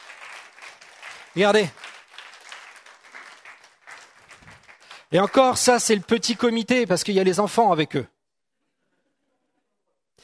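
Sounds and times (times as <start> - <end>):
church congregation clapping for a team: 0.0 - 7.7
speech: 1.3 - 1.8, 5.1 - 8.2.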